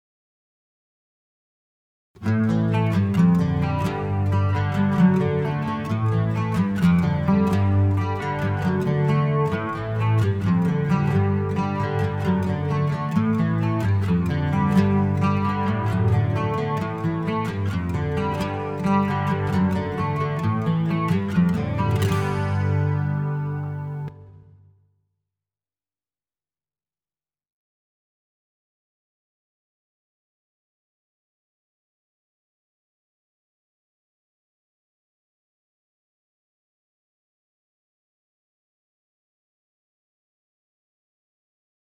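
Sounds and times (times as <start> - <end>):
acoustic music: 2.2 - 24.7.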